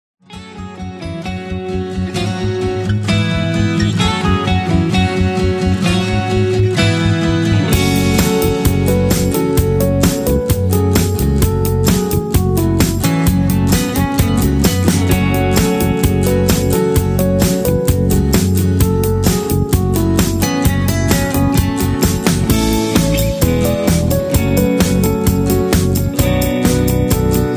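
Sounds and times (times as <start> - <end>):
instrumental lead melodies: 0.2 - 27.5.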